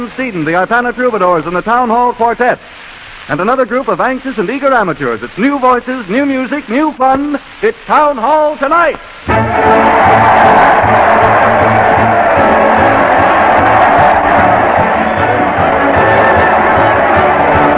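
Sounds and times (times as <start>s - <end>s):
speech: 0.0s - 12.5s
crowd cheering: 9.3s - 17.7s.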